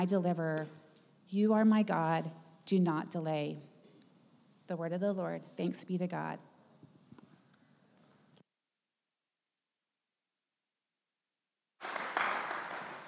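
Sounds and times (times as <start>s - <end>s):
speech: 0.0s - 3.7s, 4.7s - 6.5s
audience applause: 11.8s - 13.0s
crowd noise with scattered claps: 11.8s - 13.0s.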